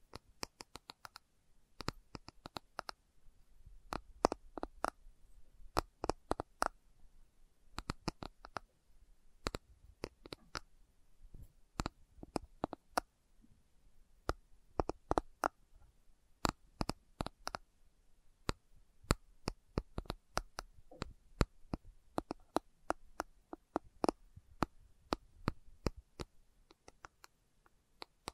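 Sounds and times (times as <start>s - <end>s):
faint low hum: 0.0s - 28.3s
slow tapping with sharp crisp clicks: 0.1s - 1.2s, 1.8s - 3.0s, 3.9s - 5.0s, 5.7s - 6.8s, 7.8s - 8.7s, 9.4s - 10.7s, 11.8s - 13.1s, 14.2s - 15.6s, 16.4s - 17.7s, 18.4s - 28.3s.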